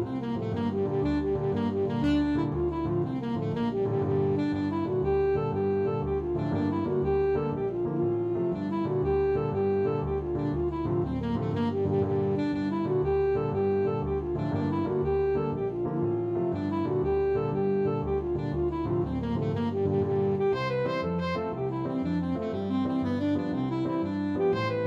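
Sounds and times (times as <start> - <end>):
saxophone playing an Irish jig medley: 0.0 - 24.8.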